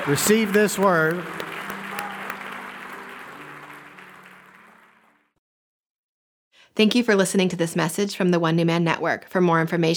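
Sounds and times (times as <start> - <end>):
speech: 0.0 - 1.4, 6.8 - 9.9
audience hand clapping: 0.0 - 5.4.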